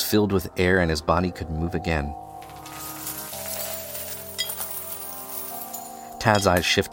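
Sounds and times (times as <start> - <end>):
speech: 0.1 - 2.3, 6.3 - 6.9
gold coins clinking onto a pile: 2.4 - 6.9.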